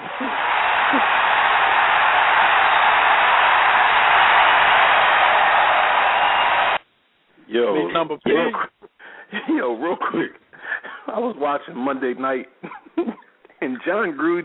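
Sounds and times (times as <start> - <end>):
crowd cheering wildly: 0.0 - 6.8
speech: 7.9 - 10.4, 11.1 - 13.1, 13.8 - 14.4.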